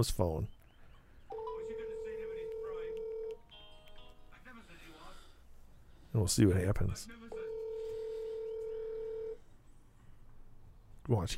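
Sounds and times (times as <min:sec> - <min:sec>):
speech: 0:00.0 - 0:00.6, 0:06.1 - 0:07.3, 0:11.1 - 0:11.3
electronic phone tone: 0:01.3 - 0:03.4, 0:07.3 - 0:09.4.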